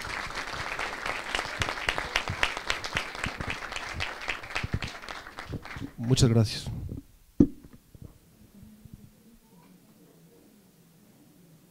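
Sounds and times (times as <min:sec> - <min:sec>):
crowd applause: 0:00.0 - 0:06.3
speech: 0:06.1 - 0:06.8.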